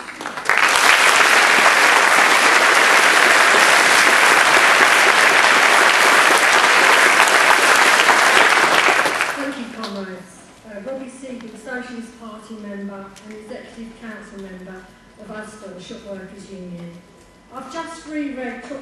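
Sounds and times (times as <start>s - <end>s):
applause welcoming a speaker at a socialist trade union gathering: 0.0s - 10.0s.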